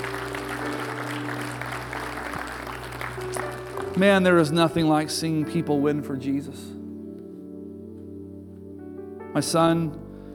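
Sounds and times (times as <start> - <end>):
audience applause: 0.0 - 4.5
speech: 4.0 - 6.8, 9.4 - 10.0.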